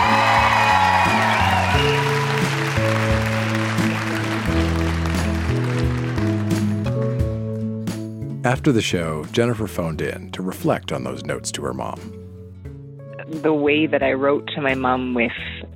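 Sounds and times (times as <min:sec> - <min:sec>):
audience clapping and cheering: 0:00.0 - 0:07.5
loud music with deep bass notes: 0:00.0 - 0:08.0
speech: 0:08.4 - 0:12.2, 0:13.4 - 0:15.6.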